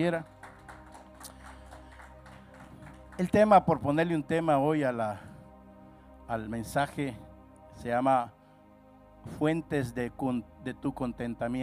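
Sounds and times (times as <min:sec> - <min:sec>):
speech: 0:00.0 - 0:00.4, 0:03.2 - 0:05.3, 0:06.3 - 0:08.4, 0:09.2 - 0:11.6
audience applauding: 0:00.2 - 0:03.5.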